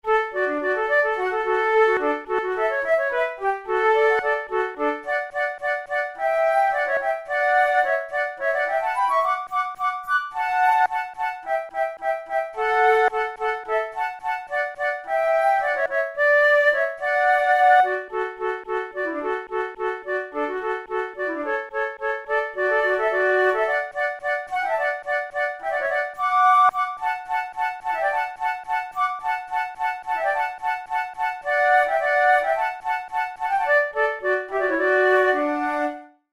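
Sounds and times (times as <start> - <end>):
flute duet: 0.0 - 36.3.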